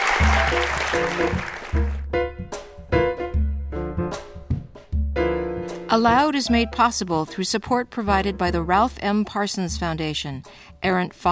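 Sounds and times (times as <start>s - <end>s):
audience applauding three poets at a reading: 0.0s - 2.1s
music with deep steady low notes and brighter plucked accents: 0.2s - 7.4s, 8.0s - 10.3s
speech: 5.9s - 11.3s.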